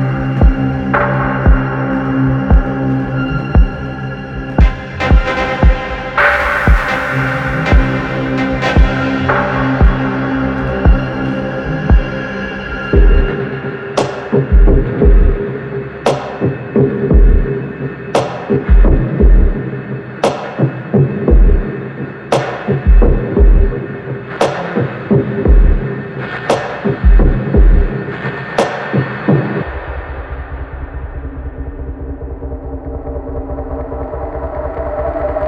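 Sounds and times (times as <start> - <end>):
dark ambience: 0.0 - 35.4.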